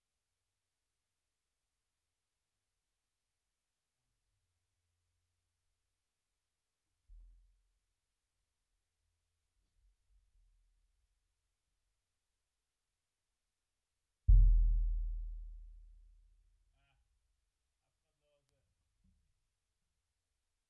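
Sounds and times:
bass drum hit: 14.3s - 15.8s.

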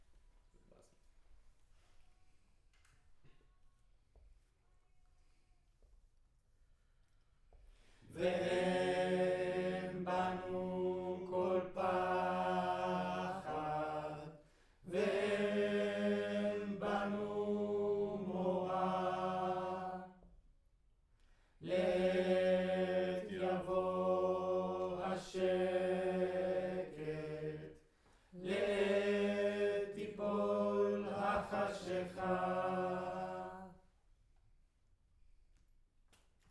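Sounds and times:
choir singing in room: 8.1s - 20.3s, 21.6s - 27.8s, 28.4s - 33.8s.

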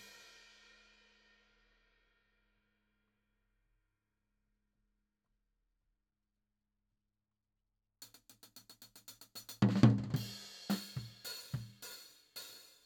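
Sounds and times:
tom drum: 8.1s - 12.0s.

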